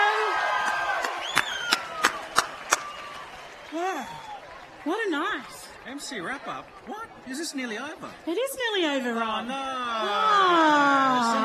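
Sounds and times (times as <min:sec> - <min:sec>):
audience rhythmic clapping: 0:00.0 - 0:08.0
crowd noise: 0:00.0 - 0:11.4
high whistle: 0:01.2 - 0:03.0
speech: 0:04.8 - 0:11.4.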